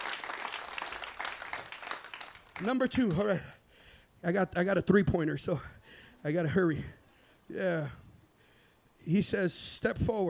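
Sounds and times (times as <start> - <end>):
audience clapping hands: 0.0 - 3.4
speech: 2.6 - 3.6, 4.2 - 8.0, 9.0 - 10.2.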